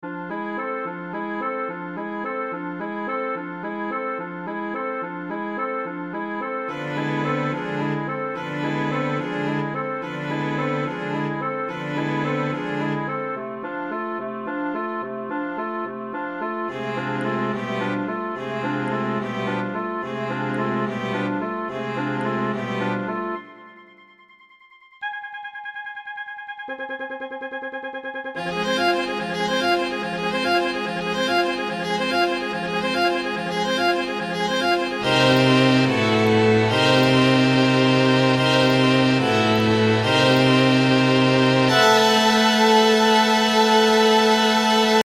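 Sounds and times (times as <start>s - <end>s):
fairy music: 0.1s - 24.3s, 25.0s - 45.0s.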